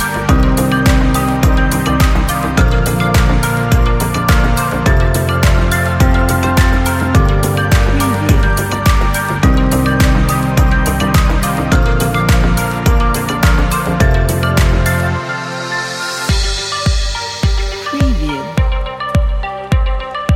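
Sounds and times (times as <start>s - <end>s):
electronic ambience: 0.0s - 20.2s.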